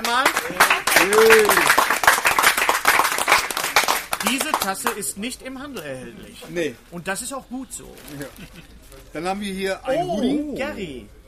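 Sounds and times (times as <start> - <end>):
audience applause: 0.0 - 5.0
speech: 4.6 - 11.2.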